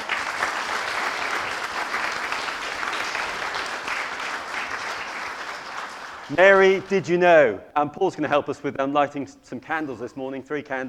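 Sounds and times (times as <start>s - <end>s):
audience applause: 0.0s - 7.1s
speech: 6.3s - 10.8s.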